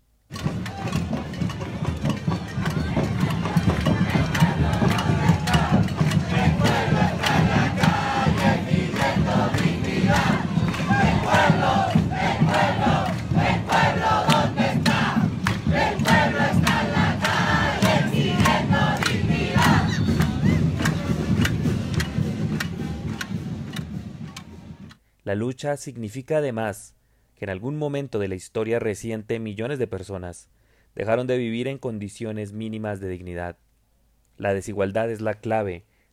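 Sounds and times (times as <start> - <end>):
thousands of protesters chanting in Plaza Italia: 0.4 - 24.9
speech: 25.4 - 33.6, 34.4 - 35.9.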